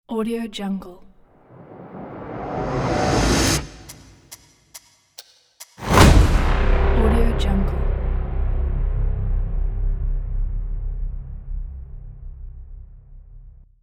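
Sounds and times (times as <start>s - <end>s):
cinematic logo reveal sting: 1.4s - 4.3s, 5.8s - 13.6s.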